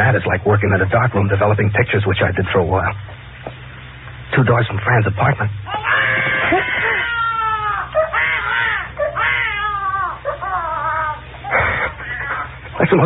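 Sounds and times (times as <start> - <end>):
speech: 0.0 - 3.6, 4.3 - 5.7, 12.9 - 13.0
child yelling: 5.7 - 11.2.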